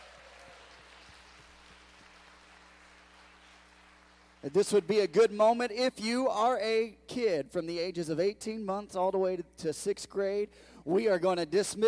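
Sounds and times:
audience clapping hands in welcome: 0.0 - 5.1
speech: 4.4 - 11.8.

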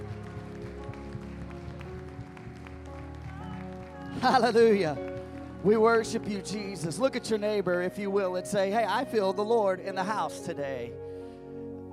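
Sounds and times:
audience applause: 0.0 - 6.9
speech: 4.2 - 11.0.

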